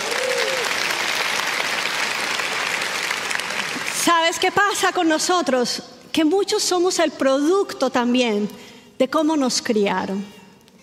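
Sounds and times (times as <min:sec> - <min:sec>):
audience applause: 0:00.0 - 0:04.0
speech: 0:04.3 - 0:10.4.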